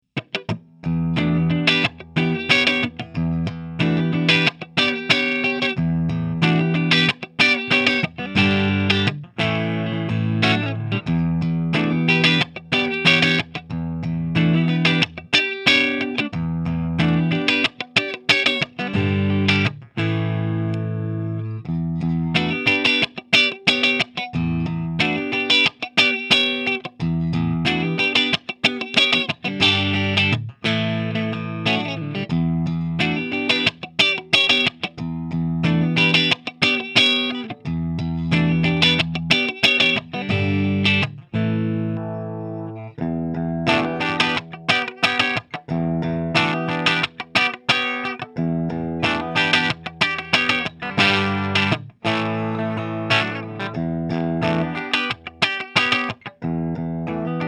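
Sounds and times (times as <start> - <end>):
almost clean electric guitar: 0.0 - 57.4.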